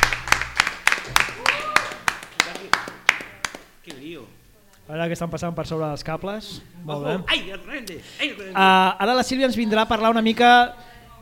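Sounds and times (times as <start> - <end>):
audience applause: 0.0 - 3.6
speech: 4.2 - 11.1.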